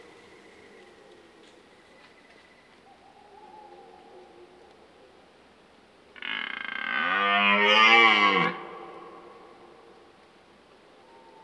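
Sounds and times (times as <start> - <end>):
red deer stag bellowing: 6.2 - 9.4.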